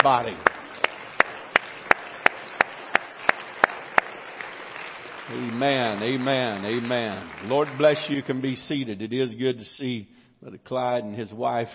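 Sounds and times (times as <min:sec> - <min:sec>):
speech: 0:00.0 - 0:00.6, 0:05.3 - 0:11.7
audience clapping hands: 0:00.0 - 0:09.0.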